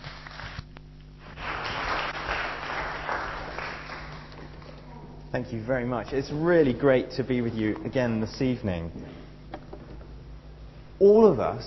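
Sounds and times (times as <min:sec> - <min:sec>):
light audience applause welcoming a speaker to an evening talk: 0:01.2 - 0:04.9
speech: 0:05.4 - 0:09.2, 0:11.0 - 0:11.6.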